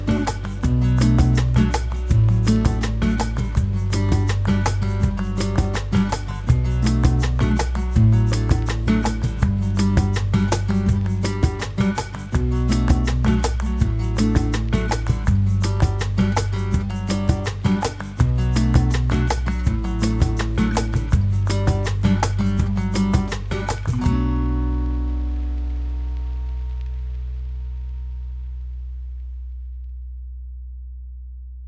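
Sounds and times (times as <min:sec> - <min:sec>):
background music: 0:00.0 - 0:27.0.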